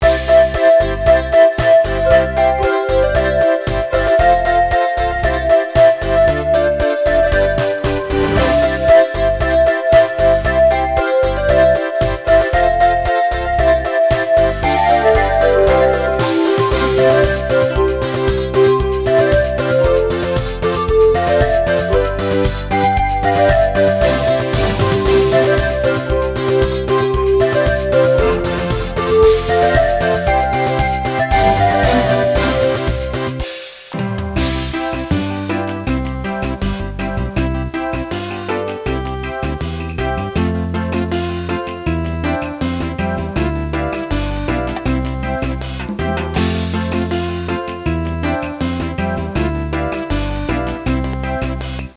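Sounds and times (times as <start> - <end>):
New Year music: 0.0 - 51.9.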